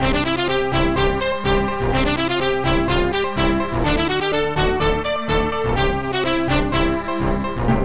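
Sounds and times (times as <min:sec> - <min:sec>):
fanfare: 0:00.0 - 0:07.7.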